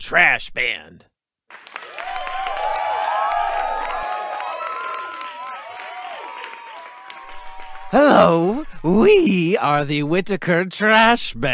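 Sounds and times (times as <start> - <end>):
speech: 0.0 - 1.7, 7.9 - 11.5
warm round of applause for musical guest: 1.5 - 9.2.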